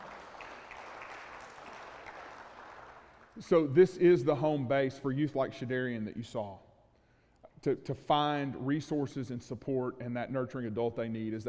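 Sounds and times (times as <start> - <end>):
crowd clapping: 0.0 - 3.4
speech: 3.4 - 6.7, 7.6 - 11.4.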